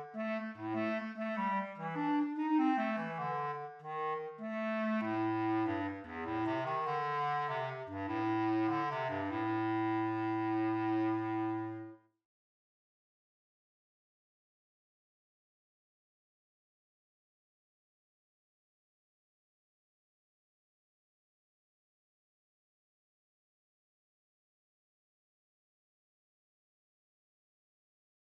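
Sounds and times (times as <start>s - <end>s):
bass clarinet: 0.0s - 12.1s.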